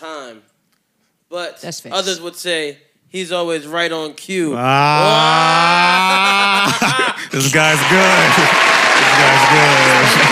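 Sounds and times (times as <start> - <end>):
speech: 1.3 - 6.2, 6.8 - 10.3
laughter: 5.0 - 10.3
long applause in a standing ovation: 7.4 - 10.3.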